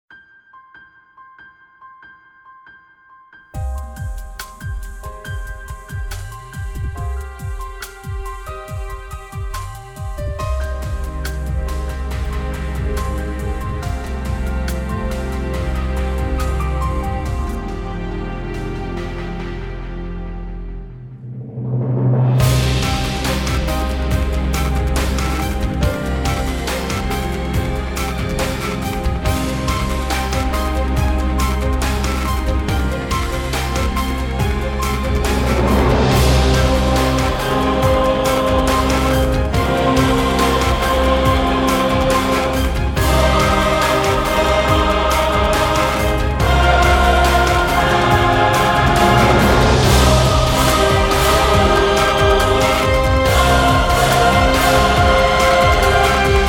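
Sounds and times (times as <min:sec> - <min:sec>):
grand technology-style background music: 0:00.0 - 0:56.4.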